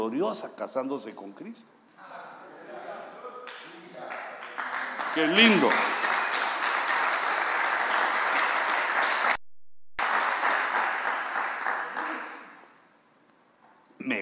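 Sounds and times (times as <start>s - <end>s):
speech: 0.1s - 1.9s, 5.2s - 6.0s
audience applauding: 3.5s - 9.4s, 10.0s - 12.6s.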